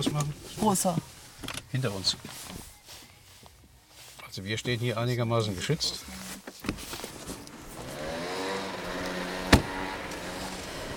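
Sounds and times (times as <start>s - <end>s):
speech: 0.0s - 1.1s, 1.7s - 2.4s, 4.4s - 6.8s
car engine running as the car is moved and re-parked: 6.9s - 10.9s
sharp thump: 9.4s - 9.8s.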